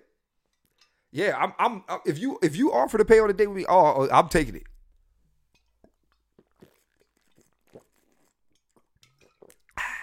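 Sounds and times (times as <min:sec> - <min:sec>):
speech: 0:01.1 - 0:04.7
person drinking water: 0:05.6 - 0:10.0.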